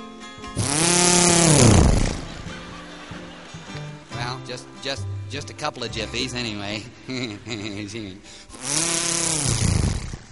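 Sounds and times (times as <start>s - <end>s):
small two-stroke outboard motor starting and sputtering: 0.6s - 2.8s, 8.6s - 10.2s
laughter: 1.8s - 4.8s, 6.8s - 8.2s
speech: 4.8s - 8.9s.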